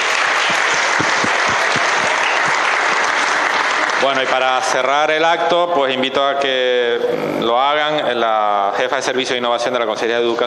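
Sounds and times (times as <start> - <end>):
audience applause: 0.0 - 5.0
speech: 4.0 - 10.4.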